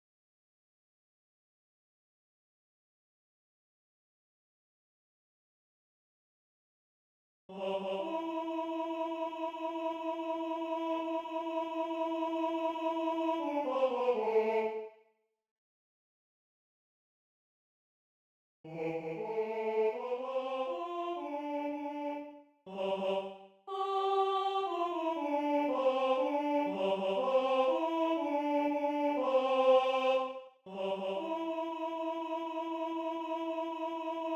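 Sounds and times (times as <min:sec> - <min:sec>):
first tenor voice singing: 0:07.5 - 0:14.8, 0:18.7 - 0:34.3.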